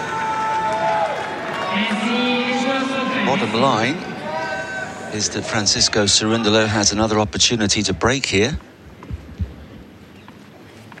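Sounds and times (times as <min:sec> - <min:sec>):
stadium crowd roaring: 0:00.0 - 0:06.8
speech: 0:01.8 - 0:04.1, 0:05.1 - 0:08.7.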